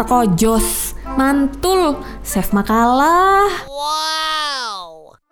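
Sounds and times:
speech: 0.0s - 4.2s
child crying loudly: 3.6s - 5.1s.

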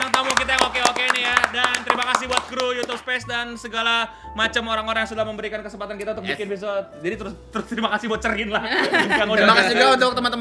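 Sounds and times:
sharp hand claps: 0.0s - 3.3s
speech: 2.2s - 10.3s
laughter: 8.6s - 10.0s.

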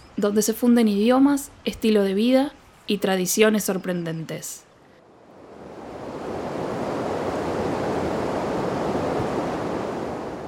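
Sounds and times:
speech: 0.2s - 4.7s
roaring waterfall: 5.3s - 10.4s.

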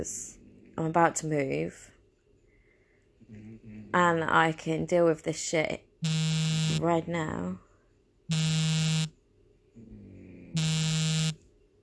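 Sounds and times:
speech: 0.0s - 1.9s, 3.3s - 7.6s
mobile phone ringing or vibrating: 6.0s - 6.8s, 8.3s - 9.1s, 10.6s - 11.4s.

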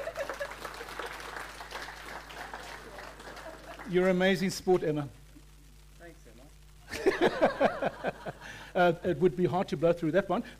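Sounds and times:
laughter: 0.0s - 1.0s, 2.8s - 3.9s, 6.9s - 8.7s
audience applause: 0.0s - 4.2s
speech: 3.9s - 5.2s, 7.4s - 10.5s.

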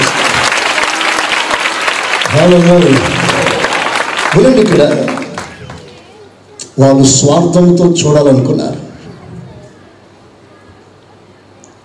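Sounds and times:
audience applause during a Telugu Christian sermon: 0.0s - 6.1s
speech: 2.3s - 3.2s, 4.4s - 5.2s, 6.8s - 8.9s.

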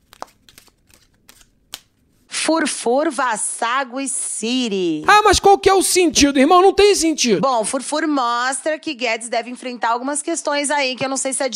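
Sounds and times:
tarot cards being shuffled: 0.0s - 2.3s
speech: 2.4s - 11.5s.

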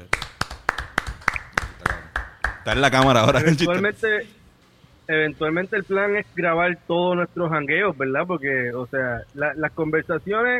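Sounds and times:
person clapping hands: 0.0s - 3.2s
faint noise: 0.0s - 10.5s
speech: 2.6s - 4.4s, 5.1s - 10.5s.

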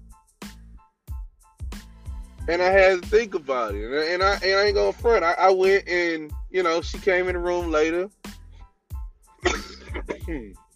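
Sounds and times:
speech: 2.4s - 8.2s, 10.3s - 10.6s
cough: 9.4s - 10.5s.

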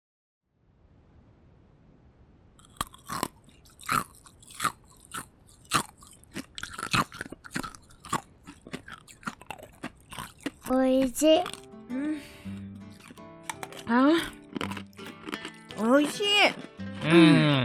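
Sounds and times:
crunching ice while eating: 2.6s - 11.7s, 12.8s - 16.8s
speech: 10.7s - 12.0s, 13.9s - 14.4s, 15.8s - 17.6s.

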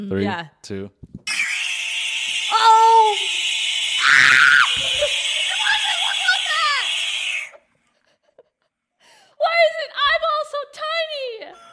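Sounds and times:
speech: 0.0s - 1.2s
frog screaming: 1.3s - 7.6s.

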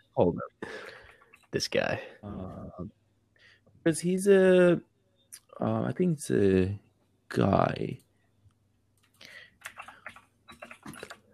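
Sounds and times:
speech: 0.2s - 0.9s, 1.5s - 3.0s, 3.8s - 8.0s
typing on a computer keyboard: 9.0s - 11.3s.

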